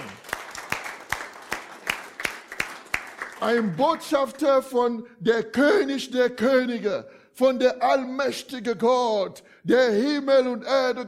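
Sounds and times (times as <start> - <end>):
church congregation clapping in time during a sermon: 0.0 - 4.5
speech: 3.4 - 11.0.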